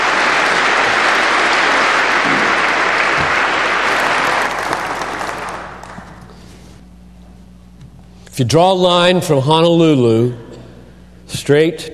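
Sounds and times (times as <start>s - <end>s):
congregation applause welcoming a preacher to his pulpit: 0.0s - 6.3s
speech: 8.4s - 10.4s, 11.3s - 11.9s.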